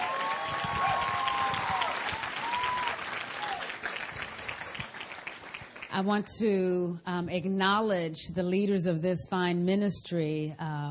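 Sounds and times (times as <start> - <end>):
audience applause: 0.0 - 5.9
speech: 6.0 - 10.9.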